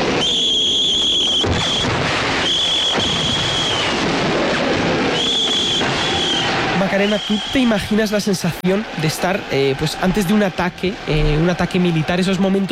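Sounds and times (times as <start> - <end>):
whistles blowing before an attack: 0.0 - 4.1, 5.0 - 8.2
speech: 7.0 - 12.6.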